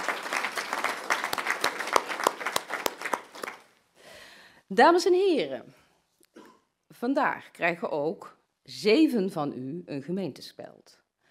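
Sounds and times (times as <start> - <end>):
audience applause: 0.0 - 3.7
speech: 4.7 - 5.8, 7.0 - 11.0.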